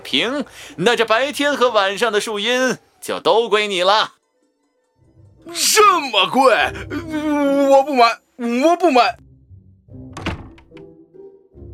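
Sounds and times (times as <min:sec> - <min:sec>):
speech: 0:00.1 - 0:04.2, 0:05.5 - 0:09.2
room door shut with a heavy dull thunk: 0:10.1 - 0:10.9.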